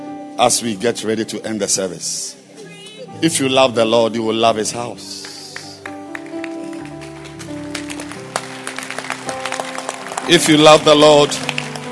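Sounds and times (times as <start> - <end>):
speech: 0.4 - 2.4, 3.2 - 5.2, 10.3 - 11.5
audience hand clapping: 5.0 - 11.9.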